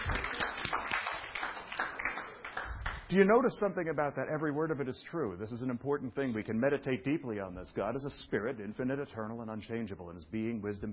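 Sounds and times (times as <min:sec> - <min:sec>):
faint sparse audience clapping during a church teaching session: 0:00.0 - 0:03.2
speech: 0:03.1 - 0:10.9.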